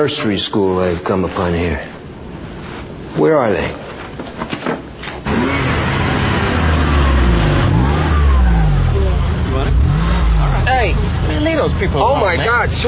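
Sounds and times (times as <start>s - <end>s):
speech: 0.0s - 2.0s, 3.2s - 4.3s, 11.6s - 12.8s
car engine revving hard in a stolen car: 5.1s - 12.8s.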